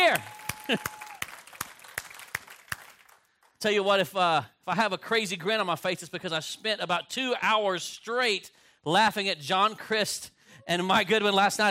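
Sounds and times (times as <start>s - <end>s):
audience applause: 0.0s - 3.5s
speech: 0.2s - 1.0s, 3.6s - 11.6s.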